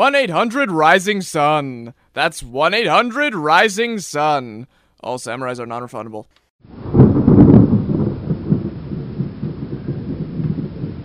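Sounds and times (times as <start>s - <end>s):
speech: 0.0s - 6.8s
pouring rain: 6.6s - 11.0s
thunder: 6.6s - 11.0s.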